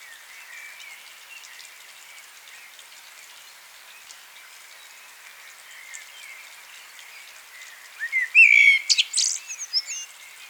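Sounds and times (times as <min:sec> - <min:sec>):
common blackbird calls: 0:08.0 - 0:10.1.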